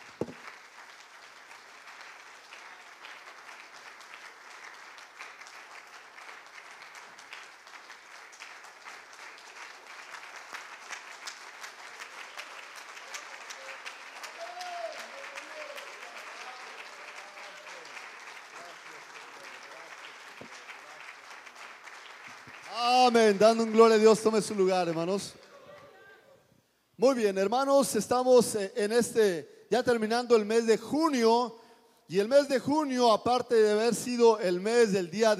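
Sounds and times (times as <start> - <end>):
audience applause: 0.0 - 26.1
speech: 23.1 - 25.4, 27.1 - 35.3.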